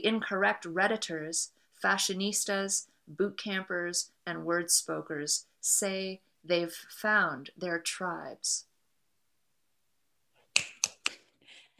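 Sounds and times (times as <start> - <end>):
speech: 0.0 - 8.7
audience finger snapping: 10.6 - 11.2.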